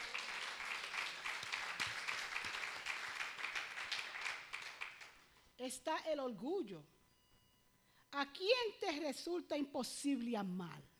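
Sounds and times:
audience applause: 0.0s - 5.2s
speech: 5.6s - 7.0s, 8.1s - 10.9s.

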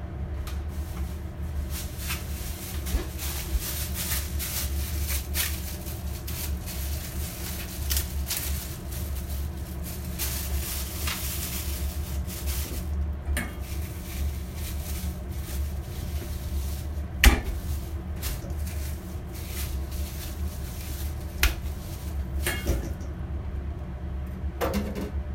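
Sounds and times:
kitchen low hum: 0.0s - 24.6s.

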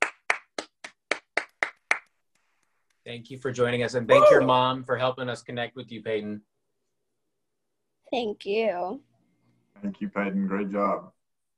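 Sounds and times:
applause from remote audience: 0.0s - 2.2s
speech: 3.1s - 6.5s, 8.1s - 9.1s, 9.8s - 11.2s.

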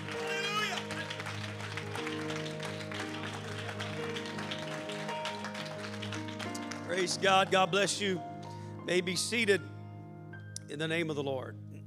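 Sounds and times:
audience clapping hands in praise: 0.0s - 7.7s
speech: 7.0s - 9.7s, 10.7s - 11.7s.

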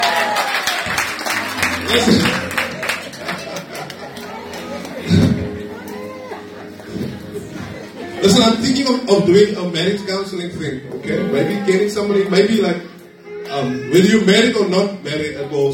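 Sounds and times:
audience clapping hands: 0.0s - 6.0s
laughter: 1.0s - 8.8s
speech: 1.9s - 2.4s, 8.2s - 12.9s, 13.6s - 15.7s.

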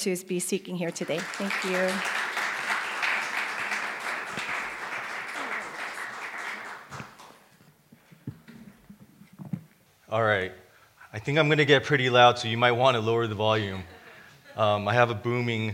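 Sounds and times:
speech: 0.0s - 2.3s, 10.1s - 14.0s, 14.6s - 15.7s
audience applause: 0.9s - 7.4s.

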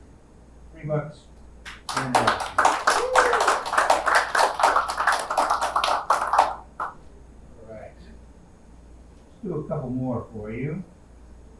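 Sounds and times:
speech: 0.8s - 1.3s, 2.0s - 2.6s, 9.7s - 11.0s
audience applause in a news clip: 1.7s - 7.0s.

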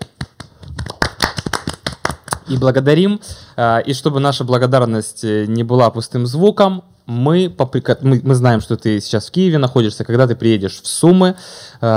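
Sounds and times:
people clapping hands: 0.0s - 2.7s
speech: 2.5s - 11.9s.

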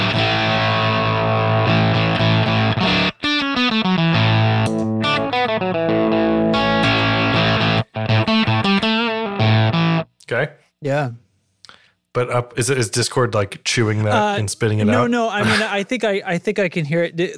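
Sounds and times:
electric guitar through an octave pedal with ring-mod-like tone: 0.0s - 10.1s
speech: 10.8s - 11.2s, 12.2s - 17.3s.

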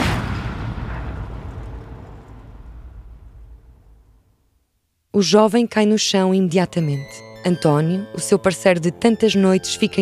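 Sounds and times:
gunshot fired at a police officer's head: 0.0s - 4.0s
speech: 5.2s - 9.9s.

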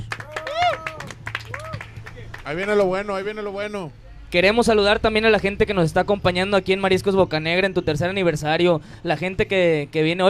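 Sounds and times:
audience applause: 0.0s - 2.9s
speech: 2.5s - 10.2s.

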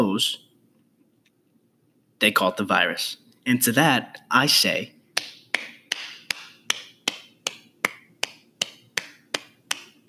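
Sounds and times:
speech: 0.0s - 0.4s, 2.2s - 5.0s
slow clap from an audience: 5.2s - 10.0s.

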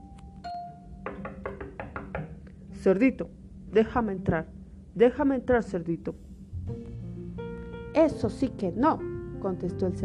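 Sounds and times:
knocking on a door: 1.0s - 2.4s
speech: 2.8s - 6.8s, 8.0s - 10.0s.

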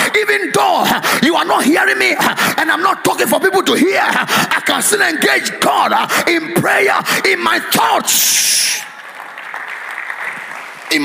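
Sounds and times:
speech: 0.2s - 8.9s
audience clapping: 8.6s - 11.0s.

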